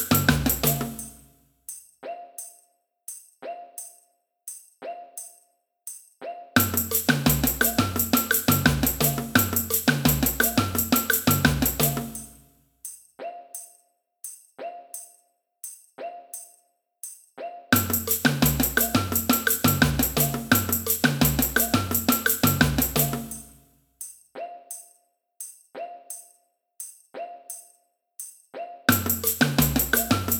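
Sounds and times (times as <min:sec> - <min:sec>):
samba band playing: 0:00.0 - 0:01.0, 0:06.6 - 0:12.3, 0:17.8 - 0:23.5, 0:28.9 - 0:30.3
cuica in a samba band: 0:00.0 - 0:01.2, 0:06.6 - 0:13.7, 0:17.7 - 0:24.9, 0:25.8 - 0:30.3.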